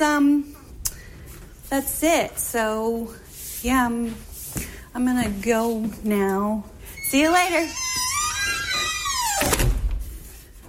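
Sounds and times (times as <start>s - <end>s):
speech: 1.7s - 4.3s, 5.0s - 7.9s
Bluetooth smart door lock motor whirring: 7.7s - 10.0s.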